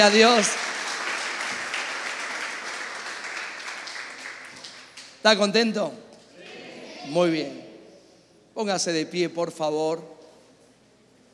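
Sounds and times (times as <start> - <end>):
speech: 0.0 - 0.7, 5.2 - 6.0, 7.0 - 7.6, 8.6 - 10.2
audience applause: 0.0 - 5.1.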